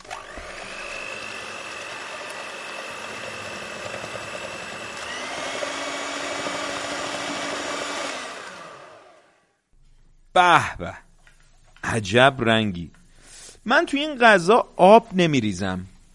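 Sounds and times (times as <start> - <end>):
electric blender pureeing tomatoes: 0.0 - 9.4
speech: 10.4 - 11.0, 11.9 - 13.0, 13.6 - 15.9.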